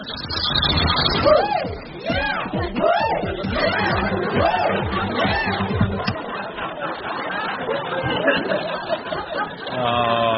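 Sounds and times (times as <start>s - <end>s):
crowd chatter of a Top of the Pops studio audience picked up by hidden microphones: 0.8s - 10.3s
chuckles and laughter of a studio audience: 3.6s - 10.2s.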